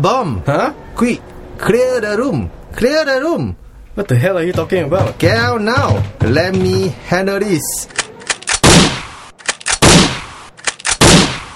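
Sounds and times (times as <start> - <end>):
speech: 0.0 - 8.0
gunshots fired at a computer: 8.3 - 11.5.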